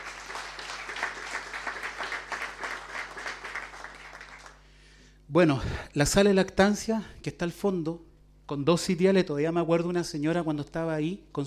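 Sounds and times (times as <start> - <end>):
audience applause: 0.0 - 4.6
speech: 5.3 - 11.4.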